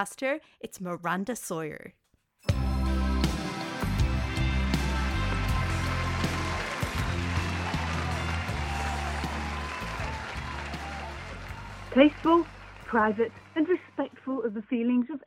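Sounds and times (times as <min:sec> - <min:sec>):
speech: 0:00.0 - 0:02.6, 0:11.9 - 0:15.2
loud music with a deep stepping bass line: 0:02.5 - 0:12.1
audience applause: 0:03.4 - 0:14.0.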